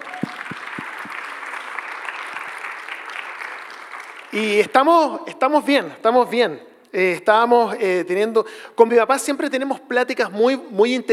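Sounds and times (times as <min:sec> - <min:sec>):
audience applause: 0:00.0 - 0:04.5
speech: 0:04.3 - 0:11.1.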